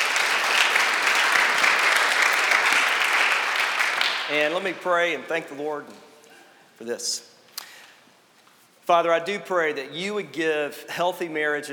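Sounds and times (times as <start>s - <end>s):
audience applause for a panel: 0.0s - 4.6s
speech: 4.3s - 6.1s, 6.8s - 7.3s, 8.9s - 11.7s.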